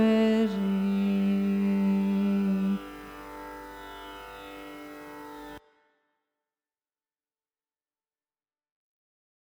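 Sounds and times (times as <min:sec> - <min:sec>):
carnatic raga music: 0:00.0 - 0:05.6.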